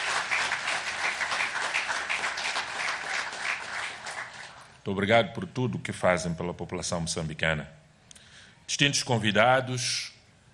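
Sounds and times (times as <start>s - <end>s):
audience applause: 0.0s - 4.7s
speech: 4.8s - 7.8s, 8.7s - 10.1s.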